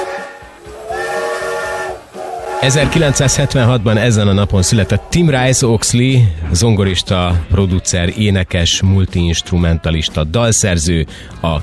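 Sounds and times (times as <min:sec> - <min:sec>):
steam locomotive whistle: 0:00.0 - 0:03.7
steam locomotive steam hissing: 0:00.0 - 0:05.4
speech: 0:02.6 - 0:11.6.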